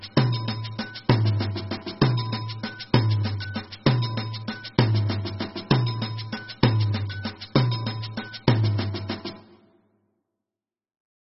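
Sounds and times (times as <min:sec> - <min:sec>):
batucada drumming: 0:00.0 - 0:09.7.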